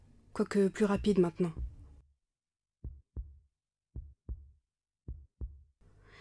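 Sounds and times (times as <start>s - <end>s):
speech: 0.4s - 1.6s
heartbeat: 1.0s - 1.9s, 2.8s - 3.4s, 4.0s - 6.1s.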